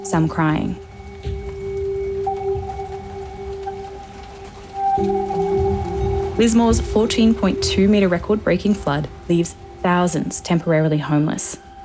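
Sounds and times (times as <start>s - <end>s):
speech: 0.0s - 0.9s, 6.4s - 11.6s
low humming drone: 0.0s - 11.8s
steady rain falling: 0.0s - 11.8s.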